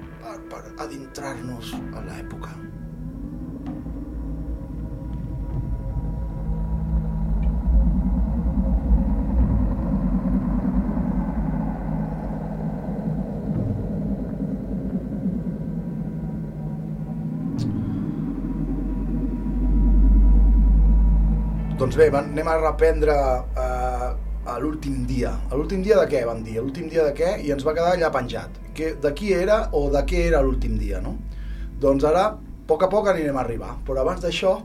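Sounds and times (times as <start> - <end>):
electronic music evoking ancient Rome with low synthesized drone: 0.0 - 34.6
speech: 0.4 - 2.8, 21.9 - 23.8, 24.5 - 34.6.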